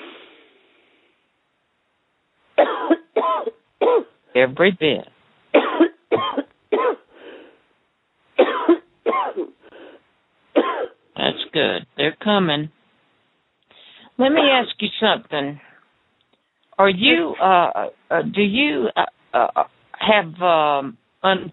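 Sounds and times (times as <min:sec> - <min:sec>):
person coughing: 0:02.6 - 0:04.1, 0:05.6 - 0:07.1, 0:08.4 - 0:09.6, 0:10.6 - 0:11.0
speech: 0:04.4 - 0:05.1, 0:11.6 - 0:12.8, 0:14.2 - 0:15.6, 0:16.8 - 0:21.5.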